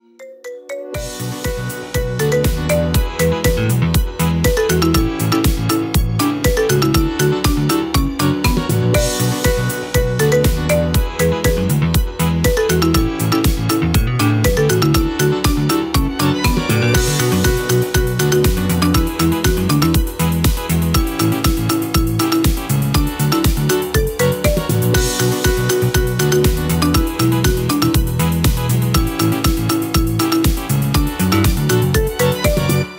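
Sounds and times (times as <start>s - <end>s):
marimba remix ringtone: 0.0s - 32.9s.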